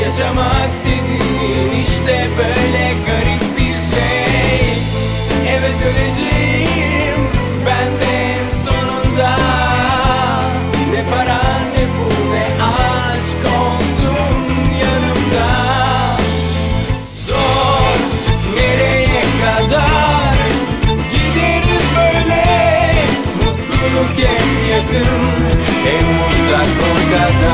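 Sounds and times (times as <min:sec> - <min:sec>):
vocals: 0:00.0 - 0:27.5.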